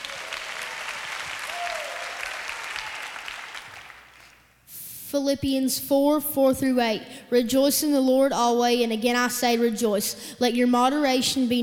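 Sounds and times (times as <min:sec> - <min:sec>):
audience cheering and applause: 0:00.0 - 0:04.4
speech: 0:05.1 - 0:11.6.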